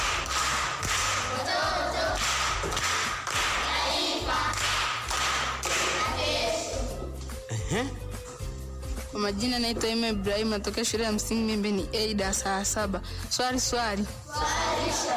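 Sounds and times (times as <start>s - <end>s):
rhythmic clapping for a pupil at a primary school quiz: 0.0s - 7.5s
speech: 7.7s - 8.0s, 9.2s - 15.1s.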